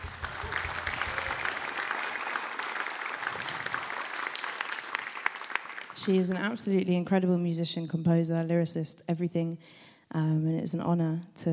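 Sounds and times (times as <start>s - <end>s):
audience applause: 0.0s - 6.4s
speech: 6.0s - 11.5s.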